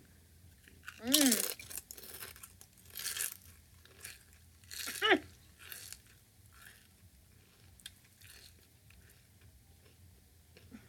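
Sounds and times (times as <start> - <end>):
bag of Harvest Cheddar Sun Chips crinkling open: 0.7 - 9.2.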